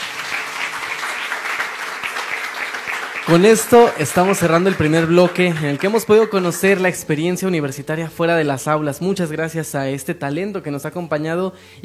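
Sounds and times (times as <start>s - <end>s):
audience applause in school auditorium: 0.0s - 7.2s
speech: 3.3s - 11.8s.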